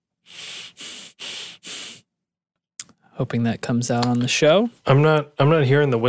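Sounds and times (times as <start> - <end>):
forceful nasal breaths: 0.2 - 2.2
speech: 3.2 - 6.0.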